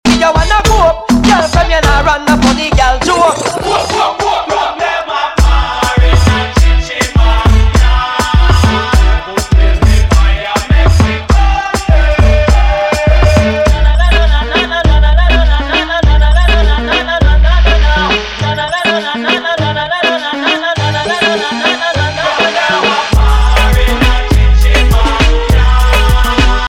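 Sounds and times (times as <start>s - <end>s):
ragga dancehall music megamix: 0.0s - 26.6s.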